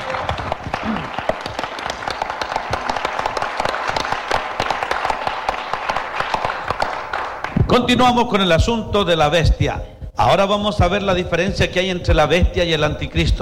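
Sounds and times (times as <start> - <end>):
audience applauding: 0.0 - 7.8
speech: 7.8 - 13.4.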